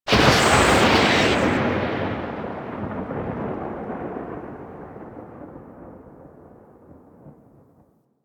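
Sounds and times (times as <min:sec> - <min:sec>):
lab lightning strike: 0:00.0 - 0:05.5.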